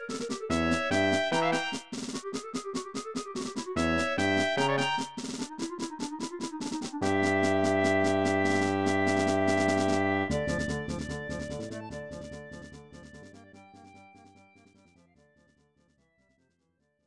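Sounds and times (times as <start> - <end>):
battle music: 0.0 - 13.3.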